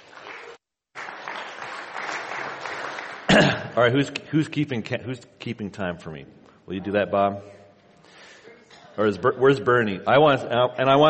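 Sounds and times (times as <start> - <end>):
audience applause welcoming a speaker at a plenary session: 0.0 - 3.6
speech: 3.4 - 7.6, 9.0 - 11.0.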